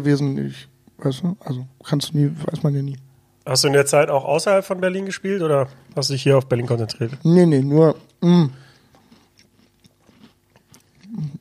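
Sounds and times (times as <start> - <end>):
speech: 0.0 - 8.6
chewing crunchy shortbread chocolate cookies: 5.7 - 11.3
brief low hummed sound: 8.2 - 8.6, 11.0 - 11.3.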